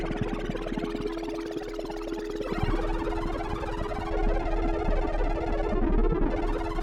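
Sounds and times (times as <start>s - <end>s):
robotic string sound stream: 1.0s - 6.8s.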